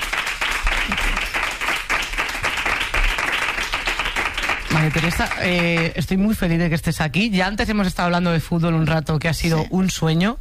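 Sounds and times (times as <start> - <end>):
audience applause welcoming a former Barça women's football player: 0.0 - 6.0
speech: 4.8 - 10.3.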